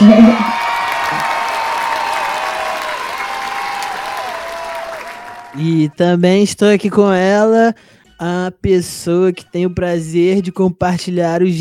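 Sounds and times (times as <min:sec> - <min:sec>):
applause: 0:00.0 - 0:05.8
cheering: 0:00.0 - 0:05.8
speech: 0:05.6 - 0:11.5.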